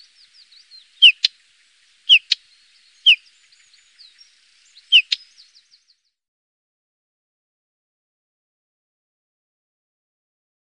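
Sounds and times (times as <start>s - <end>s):
common stonechat singing: 0.0s - 6.2s.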